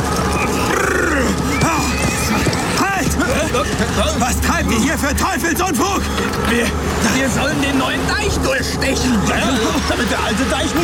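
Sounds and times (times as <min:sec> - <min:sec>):
clattering hooves: 0:00.0 - 0:07.1
horse whinnying as it is reined in: 0:00.3 - 0:03.1
laughter: 0:00.4 - 0:10.8
speech: 0:04.0 - 0:10.8.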